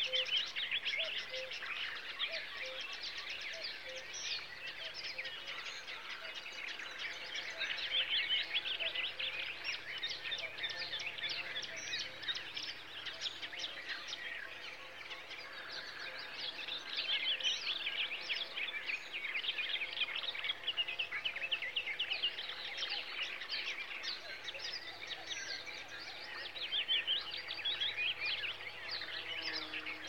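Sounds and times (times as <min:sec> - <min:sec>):
birds in summer: 0:00.0 - 0:30.0
bees in summer: 0:28.9 - 0:30.0.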